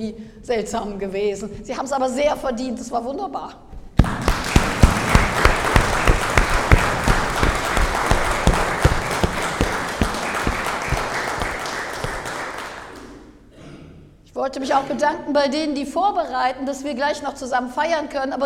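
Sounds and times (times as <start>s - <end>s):
speech: 0.0s - 3.7s, 14.4s - 18.4s
audience applause for a choir: 4.0s - 13.2s.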